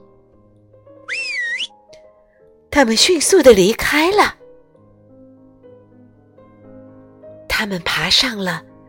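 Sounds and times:
shrill whistle blast: 1.1 - 1.7
speech: 2.8 - 4.4, 7.6 - 8.7.

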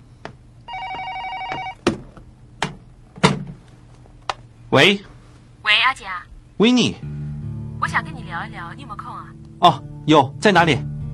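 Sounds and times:
telephone ringing: 0.7 - 1.8
speech: 4.7 - 5.1, 5.8 - 7.1, 7.8 - 10.9.

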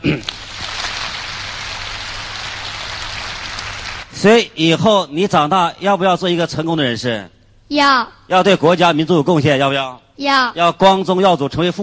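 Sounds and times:
crowd applause: 0.2 - 4.2
speech: 4.2 - 11.8.

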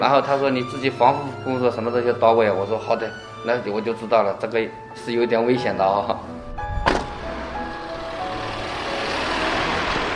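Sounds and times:
speech: 0.0 - 6.4
medical-waste garbage collection truck engine rumble: 6.6 - 10.1
sharp thunk: 6.8 - 7.4.

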